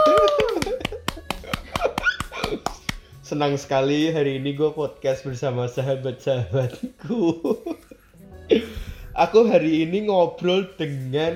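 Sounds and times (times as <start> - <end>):
laughter: 0.0 - 2.8, 6.6 - 8.7
crowd hand clapping: 0.0 - 3.2
speech: 3.3 - 7.7, 9.2 - 11.3.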